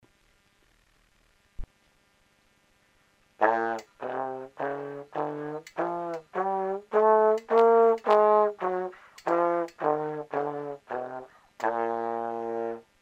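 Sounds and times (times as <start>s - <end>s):
trombone playing a scale: 3.4s - 13.0s.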